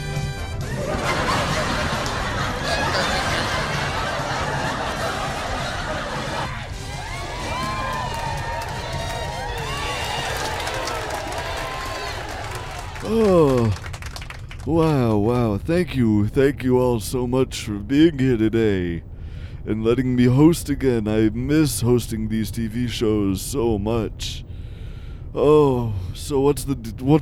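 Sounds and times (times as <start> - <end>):
crowd applauding: 0.0 - 14.9
laughter: 0.6 - 6.6
cheering: 0.6 - 14.5
speech: 14.7 - 24.4, 25.3 - 27.2.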